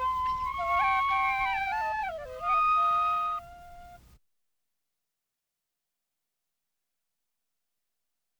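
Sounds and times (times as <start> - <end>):
flute duet: 0.0 - 4.2.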